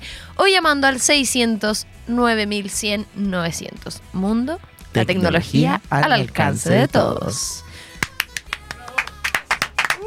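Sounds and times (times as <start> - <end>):
speech: 0.4 - 7.7
spontaneous applause: 8.0 - 10.0.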